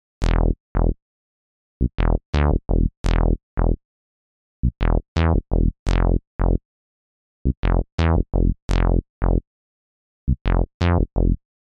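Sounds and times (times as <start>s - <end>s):
bass: 0.0s - 1.0s, 1.8s - 3.8s, 4.6s - 6.6s, 7.4s - 9.4s, 10.3s - 11.6s.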